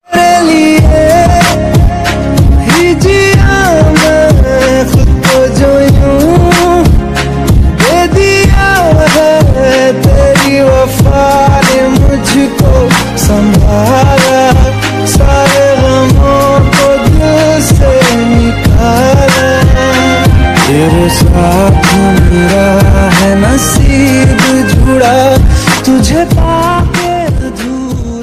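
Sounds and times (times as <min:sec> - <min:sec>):
Hindi Bollywood love song ringtone: 0:00.0 - 0:28.2.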